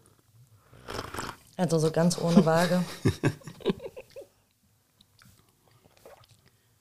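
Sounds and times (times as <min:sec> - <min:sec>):
breathing: 0:00.6 - 0:01.1
person slurping freshly brewed coffee: 0:00.8 - 0:01.4, 0:05.2 - 0:06.6
speech: 0:01.6 - 0:03.5
laughter: 0:02.3 - 0:04.2.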